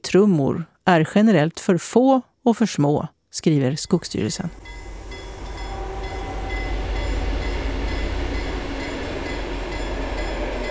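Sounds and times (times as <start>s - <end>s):
speech: 0.1s - 4.8s
train rushing past on railway track on new grey gravel embankment: 4.3s - 10.6s.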